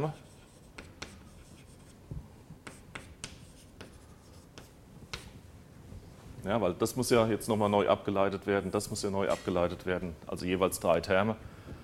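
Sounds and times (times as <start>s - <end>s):
speech: 0.0s - 0.2s, 6.4s - 11.6s
chalk scratching and tapping on a blackboard during a math lecture: 0.0s - 2.0s, 2.6s - 5.4s.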